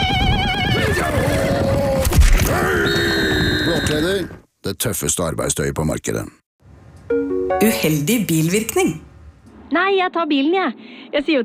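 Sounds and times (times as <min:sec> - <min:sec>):
horse neighing: 0:00.7 - 0:04.4
speech: 0:04.0 - 0:06.4, 0:07.1 - 0:09.1, 0:09.7 - 0:11.4.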